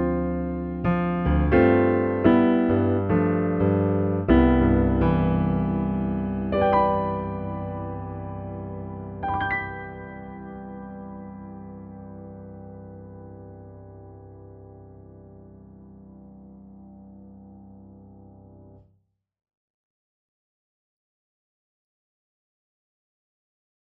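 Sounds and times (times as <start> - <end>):
piano ballad: 0.0 - 18.8.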